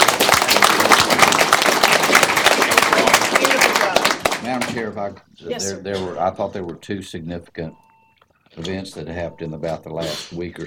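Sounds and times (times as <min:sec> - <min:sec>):
audience applauding a speaker: 0:00.0 - 0:04.7
speech: 0:04.7 - 0:07.8, 0:08.6 - 0:10.6.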